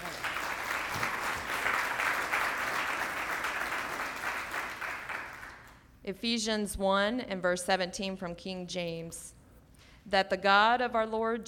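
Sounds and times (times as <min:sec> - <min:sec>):
audience applauding: 0:00.0 - 0:05.8
speech: 0:06.1 - 0:09.4, 0:10.0 - 0:11.4.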